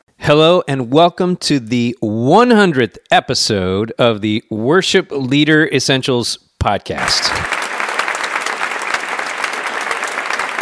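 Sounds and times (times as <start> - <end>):
speech: 0.3 - 7.6
crowd applauding and cheering: 7.0 - 10.6.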